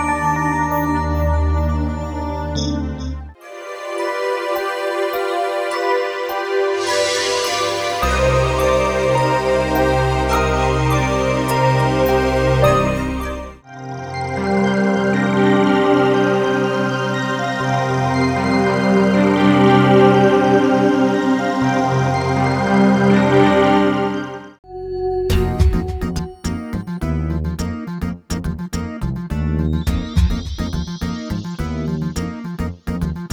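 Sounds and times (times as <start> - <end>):
ambient atmosphere: 0.0 - 33.3.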